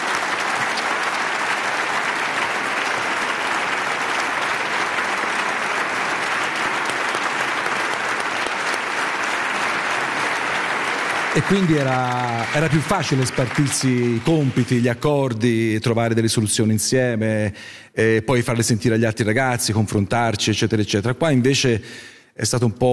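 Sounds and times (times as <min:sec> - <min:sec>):
audience applause: 0:00.0 - 0:15.4
speech: 0:11.4 - 0:22.9.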